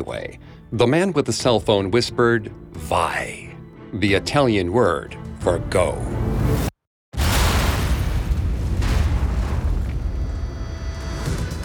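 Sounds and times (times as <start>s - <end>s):
speech: 0.0s - 6.7s
TNT explosion under a highway: 7.2s - 11.6s.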